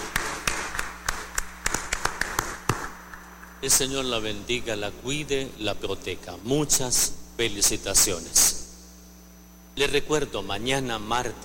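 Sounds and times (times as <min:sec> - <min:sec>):
applause: 0:00.0 - 0:02.9
speech: 0:03.6 - 0:08.6, 0:09.8 - 0:11.4.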